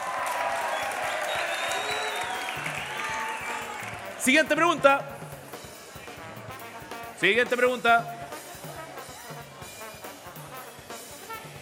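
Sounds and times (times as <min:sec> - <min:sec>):
audience clapping: 0:00.0 - 0:04.6
speech: 0:04.2 - 0:05.2, 0:07.2 - 0:08.2.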